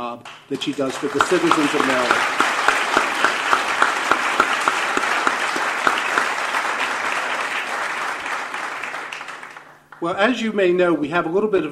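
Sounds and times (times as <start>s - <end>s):
speech: 0.0s - 2.5s, 10.0s - 11.6s
audience applause: 0.3s - 10.0s.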